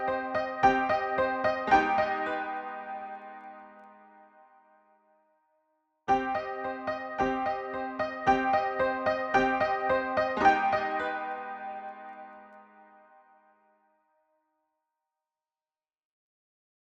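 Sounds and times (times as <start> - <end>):
broken piano: 0.0 - 3.7, 6.1 - 12.7.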